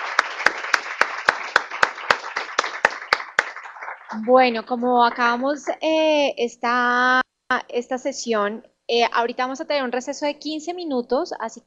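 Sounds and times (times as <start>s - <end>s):
audience applause: 0.0s - 4.5s
speech: 4.1s - 11.6s.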